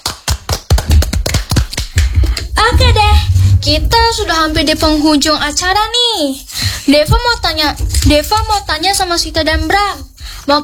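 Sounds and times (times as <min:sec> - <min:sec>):
hand claps applauding a guest: 0:00.0 - 0:02.5
speech: 0:03.6 - 0:10.6.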